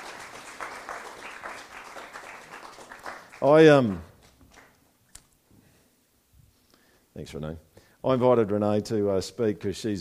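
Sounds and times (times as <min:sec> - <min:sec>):
round of applause: 0:00.0 - 0:04.8
speech: 0:03.4 - 0:04.1, 0:07.2 - 0:10.0.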